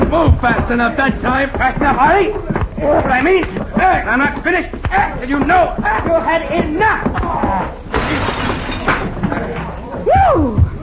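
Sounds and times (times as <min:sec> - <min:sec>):
speech: 0:00.1 - 0:07.4, 0:10.3 - 0:10.6
plate glass mirror shattering: 0:07.9 - 0:09.1.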